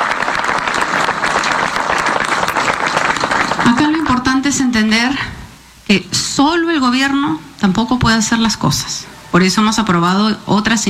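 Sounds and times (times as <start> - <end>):
audience applause: 0.0 - 4.1
speech: 4.5 - 10.8.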